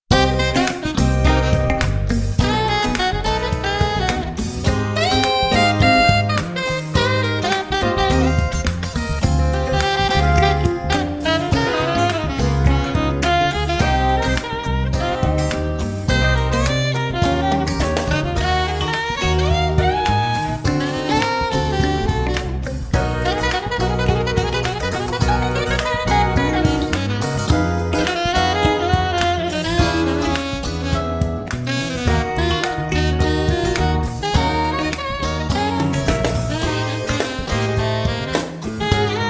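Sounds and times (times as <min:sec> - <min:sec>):
funk jazz music: 0:00.0 - 0:39.2.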